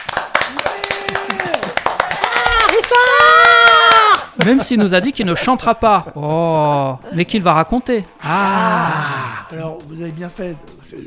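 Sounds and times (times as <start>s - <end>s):
audience applause: 0.0s - 4.4s
speech: 4.4s - 11.0s.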